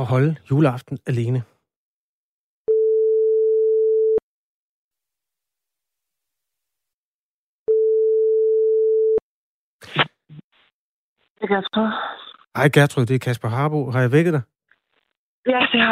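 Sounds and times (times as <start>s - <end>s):
speech: 0.0s - 1.5s, 11.4s - 14.5s, 15.4s - 15.9s
telephone ringing tone during outgoing call: 2.7s - 4.2s, 7.7s - 9.2s.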